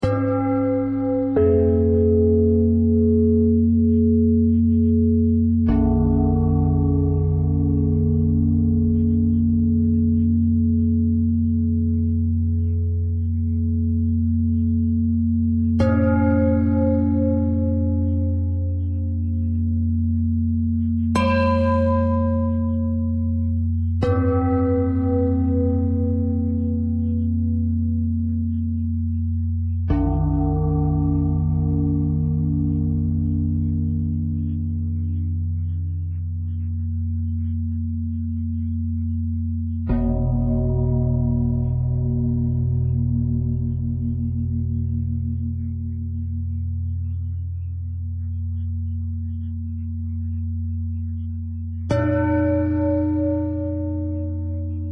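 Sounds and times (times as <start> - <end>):
bending bell tone: 0.0 - 54.9.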